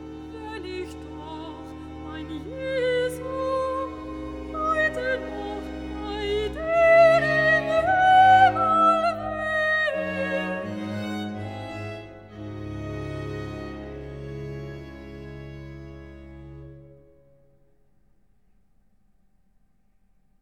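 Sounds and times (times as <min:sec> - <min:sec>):
recitative singing: 0:00.0 - 0:12.2.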